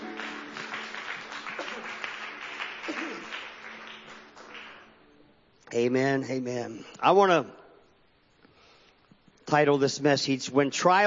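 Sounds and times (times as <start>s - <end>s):
audience applause: 0.0s - 5.0s
speech: 2.9s - 3.4s, 5.7s - 7.6s, 9.5s - 11.0s.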